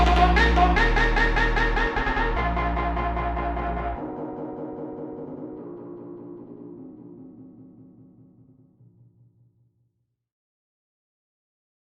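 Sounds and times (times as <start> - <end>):
electronic music: 0.0 - 8.8.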